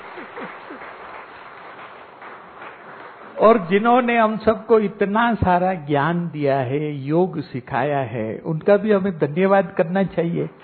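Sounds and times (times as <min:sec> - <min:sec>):
audience applause at a yoga and spiritual gathering: 0:00.0 - 0:03.8
speech: 0:03.4 - 0:10.6.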